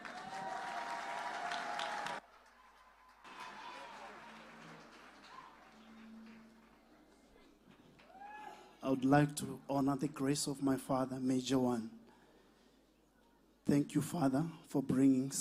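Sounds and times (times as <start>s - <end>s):
audience applause welcoming a performer onto the stage at a church service: 0.0s - 8.6s
speech: 8.8s - 12.0s, 13.7s - 15.3s.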